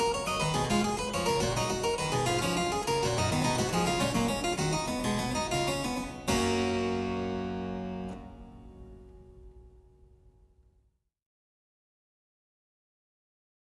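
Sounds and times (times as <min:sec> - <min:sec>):
harpsichord: 0:00.0 - 0:09.4.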